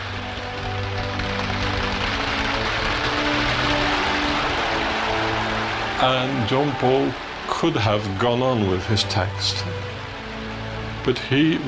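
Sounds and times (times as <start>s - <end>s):
crowd applause: 0.0s - 11.6s
speech: 6.0s - 9.9s, 11.0s - 11.6s.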